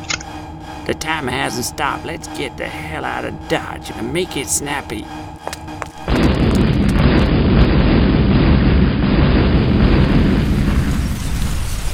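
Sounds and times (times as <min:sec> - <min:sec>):
speech: 0:00.8 - 0:05.3
bomb explosion: 0:06.0 - 0:11.3.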